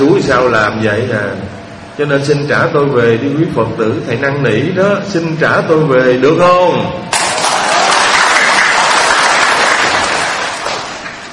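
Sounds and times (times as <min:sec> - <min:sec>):
speech: 0:00.0 - 0:07.2
audience at a Buddhist dharma talk applauding: 0:07.2 - 0:11.3.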